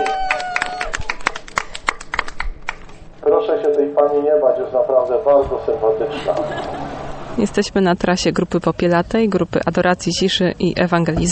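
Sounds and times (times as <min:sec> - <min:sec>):
applause from a small group: 0:00.0 - 0:02.9
speech: 0:03.8 - 0:06.7, 0:07.4 - 0:11.3
laughter: 0:05.5 - 0:07.4.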